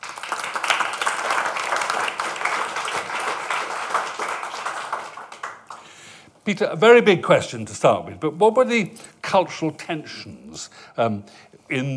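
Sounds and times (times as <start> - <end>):
audience applause welcoming a guest: 0.0 - 6.0
speech: 6.4 - 11.9.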